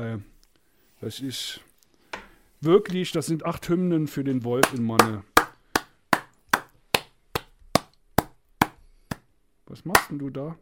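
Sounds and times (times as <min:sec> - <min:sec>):
speech: 0:00.0 - 0:00.3, 0:01.0 - 0:01.7, 0:02.6 - 0:05.3, 0:09.7 - 0:10.6
hand clapping: 0:04.6 - 0:09.2, 0:10.0 - 0:10.2.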